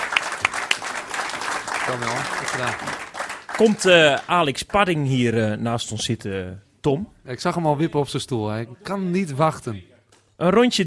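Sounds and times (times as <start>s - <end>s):
audience applause: 0.0s - 4.4s
speech: 1.9s - 10.8s.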